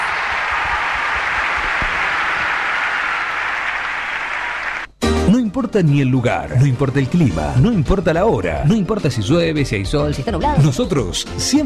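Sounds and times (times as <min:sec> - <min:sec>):
audience applause: 0:00.0 - 0:04.9
speech: 0:05.6 - 0:11.6.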